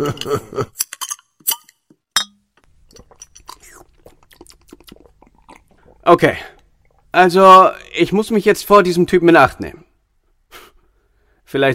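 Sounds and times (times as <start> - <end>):
speech: 0.0 - 0.8, 6.1 - 9.8, 11.5 - 11.7
drinking and handling noises: 0.8 - 7.2
beer glass clink: 2.2 - 2.4.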